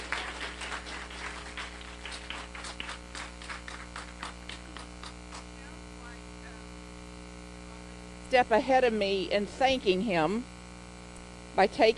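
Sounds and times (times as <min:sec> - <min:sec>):
audience clapping: 0:00.0 - 0:06.2
steady low electrical hum: 0:00.0 - 0:11.9
speech: 0:08.3 - 0:10.5, 0:11.6 - 0:11.9.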